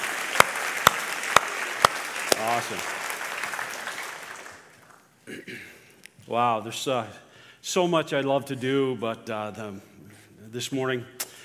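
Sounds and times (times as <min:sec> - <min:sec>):
round of applause: 0:00.0 - 0:05.1
speech: 0:02.4 - 0:03.0, 0:06.3 - 0:09.9, 0:10.5 - 0:11.2.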